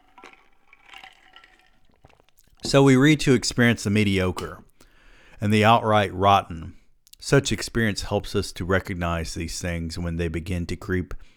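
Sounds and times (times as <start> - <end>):
soft liquid gurgles: 0.0 - 4.8
slurping sips of Coke Zero from a metal Copper Yeti tumbler: 0.0 - 4.9
speech: 2.7 - 4.7, 5.4 - 11.3.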